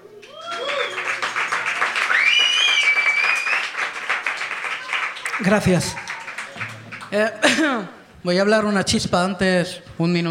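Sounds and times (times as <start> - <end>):
high whistles and cheers: 0.2 - 4.0, 4.6 - 6.7
audience applause: 0.2 - 7.6
speech: 5.4 - 6.1, 7.1 - 10.2.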